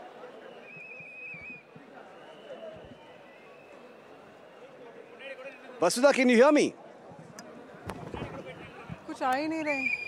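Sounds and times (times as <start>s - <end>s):
whistles blown by party supporters: 0.2s - 4.7s, 9.7s - 10.0s
speech: 5.8s - 6.8s, 9.2s - 10.0s.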